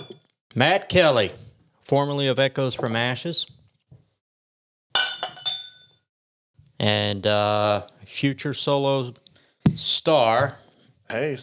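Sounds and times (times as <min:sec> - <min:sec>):
glasses clinking in a toast: 0:00.0 - 0:00.2, 0:05.0 - 0:05.8
speech: 0:00.6 - 0:03.6, 0:06.8 - 0:09.2, 0:09.8 - 0:11.4.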